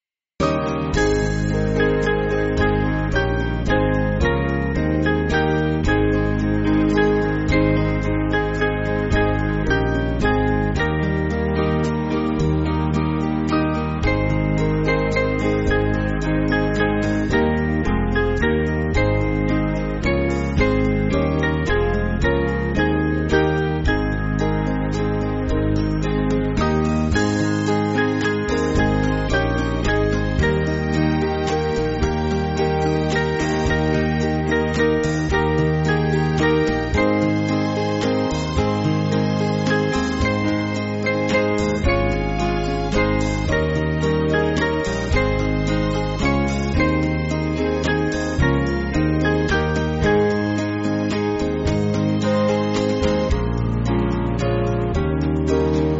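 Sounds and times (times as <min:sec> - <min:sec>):
backing music for churches: 0:00.4 - 0:55.9.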